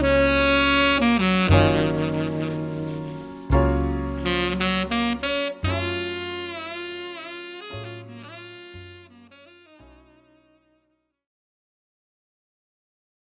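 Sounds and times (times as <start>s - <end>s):
piano quartet playing: 0.0s - 10.2s.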